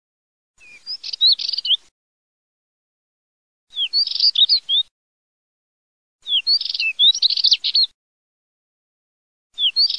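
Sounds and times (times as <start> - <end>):
spectacled warbler scratchy twittering song: 0.6 - 1.9, 3.7 - 4.9, 6.2 - 8.0, 9.6 - 9.9.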